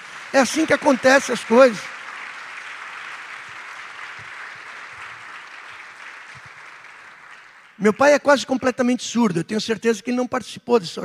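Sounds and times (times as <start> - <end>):
audience applauding: 0.0 - 8.1
speech: 0.3 - 1.9, 7.8 - 11.0.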